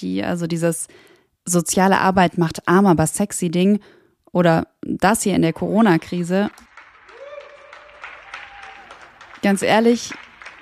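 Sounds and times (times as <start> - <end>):
speech: 0.0 - 6.7, 9.4 - 10.5
many people clapping: 5.9 - 10.5.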